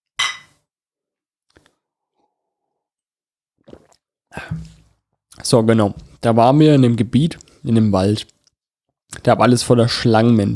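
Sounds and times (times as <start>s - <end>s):
glasses of mulled wine clinking: 0.2s - 0.6s
speech: 5.5s - 8.3s, 9.1s - 10.5s.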